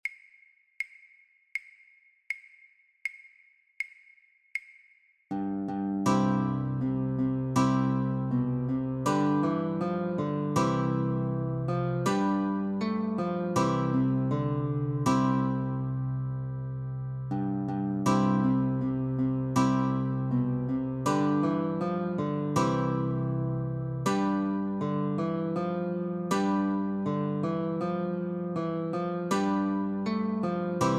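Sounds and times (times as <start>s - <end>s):
guitar melody with chords: 5.3s - 30.9s.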